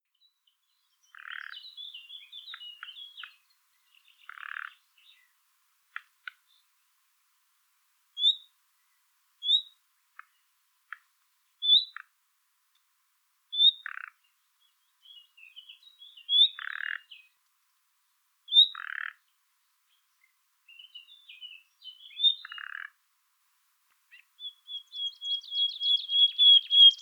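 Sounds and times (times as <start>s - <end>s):
common nightingale singing: 0.1s - 5.3s, 8.2s - 8.5s, 9.4s - 10.3s, 11.6s - 12.0s, 13.5s - 17.4s, 18.5s - 19.1s, 19.9s - 22.9s, 24.1s - 26.9s.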